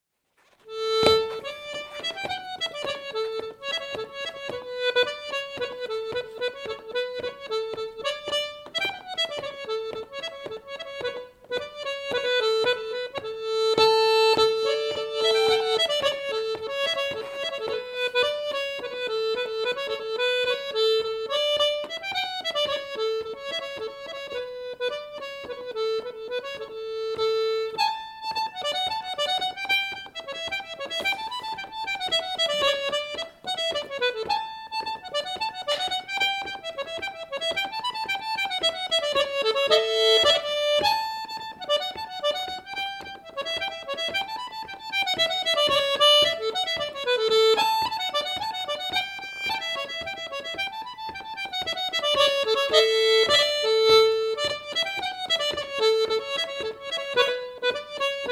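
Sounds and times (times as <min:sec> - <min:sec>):
polska dance tune: 0:00.4 - 0:58.3.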